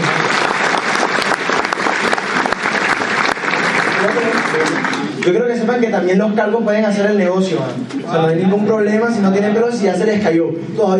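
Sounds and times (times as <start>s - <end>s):
audience applause: 0.0s - 5.4s
speech: 5.2s - 10.9s.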